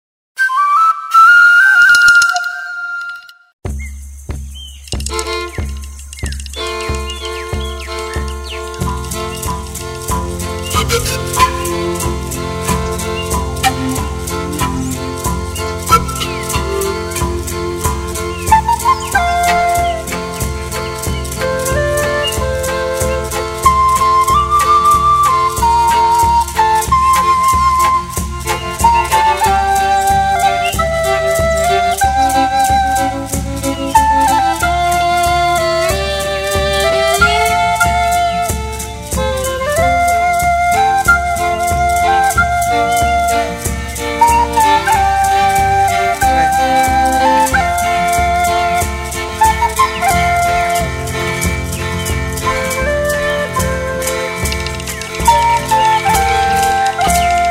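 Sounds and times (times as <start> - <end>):
indigenous instrumental flute: 0.4 - 3.6, 5.0 - 57.4.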